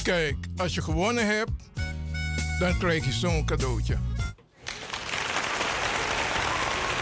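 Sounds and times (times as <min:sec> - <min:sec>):
speech: 0:00.1 - 0:01.7, 0:02.6 - 0:04.1
applause: 0:04.5 - 0:07.0.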